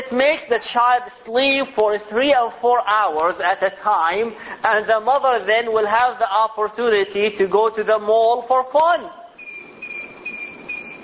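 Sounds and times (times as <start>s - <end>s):
speech: 0.1s - 9.2s
electronic alarm beeping: 9.4s - 11.0s.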